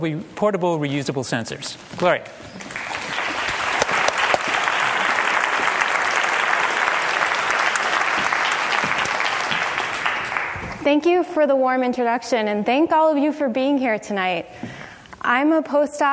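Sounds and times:
speech: 0.0 - 2.8, 10.9 - 16.1
round of applause: 2.6 - 10.8.

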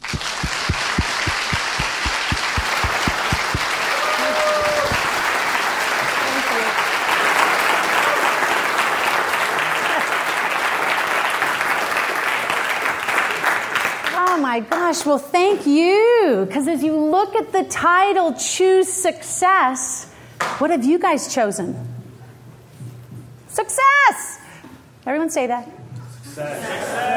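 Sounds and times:
thumping low beat: 0.0 - 3.7
loud rousing crowd applause: 0.0 - 14.2
whistles and cheers: 3.8 - 5.1
speech: 15.0 - 21.9, 23.6 - 24.4, 25.0 - 25.8, 26.4 - 27.1.

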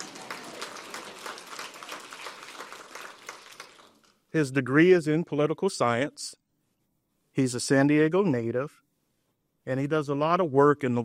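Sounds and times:
audience applause: 0.0 - 4.2
speech: 4.3 - 6.4, 7.4 - 8.8, 9.6 - 11.0.

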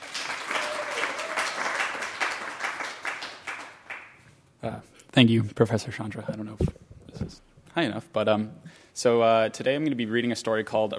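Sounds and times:
audience applause greeting a reader before a story reading: 0.0 - 4.1
speech: 4.6 - 10.9.

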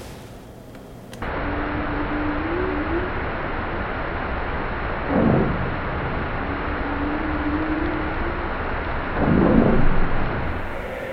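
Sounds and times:
humpback whale calls: 1.4 - 3.2, 6.6 - 8.4
underwater explosions: 1.6 - 11.1.

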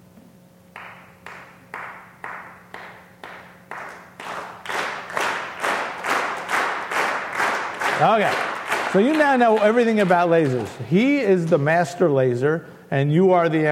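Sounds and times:
band members clapping hands in rhythm: 0.7 - 11.6
speech: 8.0 - 13.7.

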